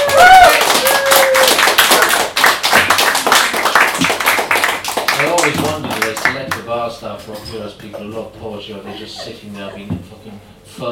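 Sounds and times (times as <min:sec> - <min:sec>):
whoops and cheers: 0:00.0 - 0:01.8
crowd applause: 0:00.0 - 0:06.3
speech: 0:07.2 - 0:10.9.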